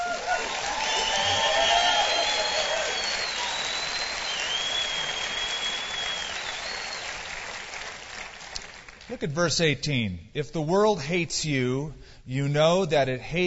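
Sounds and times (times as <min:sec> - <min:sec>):
audience applause at a live Saturday night Bible study: 0:00.0 - 0:09.2
speech: 0:09.2 - 0:13.4.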